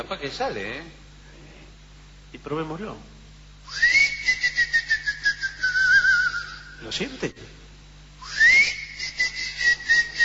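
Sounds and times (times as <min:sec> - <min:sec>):
speech: 0:00.0 - 0:01.0, 0:02.4 - 0:03.1, 0:06.8 - 0:07.6
person whistling to lure a cricket: 0:03.7 - 0:06.8, 0:08.2 - 0:10.2.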